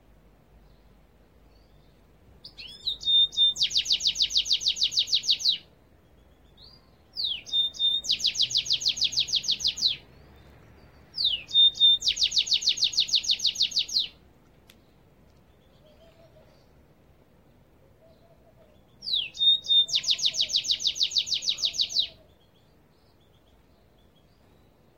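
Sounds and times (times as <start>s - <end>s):
goldfinch twittering song: 1.6s - 14.2s, 18.8s - 24.8s.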